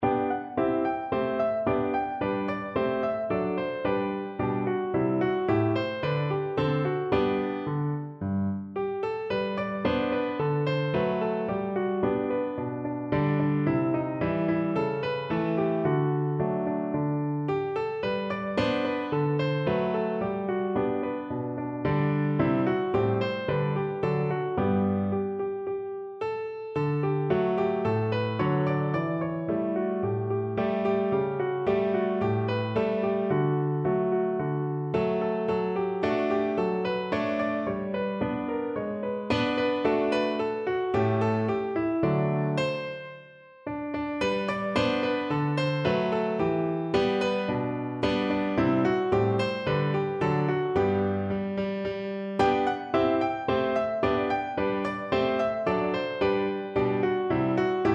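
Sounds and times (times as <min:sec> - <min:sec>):
piano: 0:00.0 - 0:57.9.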